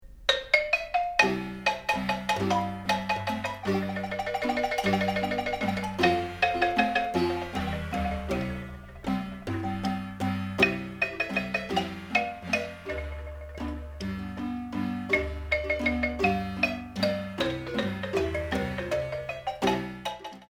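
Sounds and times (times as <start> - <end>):
marimba: 0.3 - 20.5.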